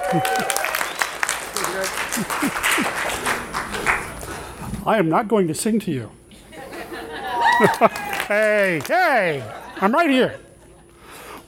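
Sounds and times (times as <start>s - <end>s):
laughter: 0.0s - 0.7s, 1.5s - 4.2s, 6.3s - 11.1s
audience applause: 0.0s - 4.5s, 7.3s - 9.6s
speech: 0.1s - 0.8s, 1.8s - 4.0s, 4.8s - 6.2s, 7.6s - 10.4s.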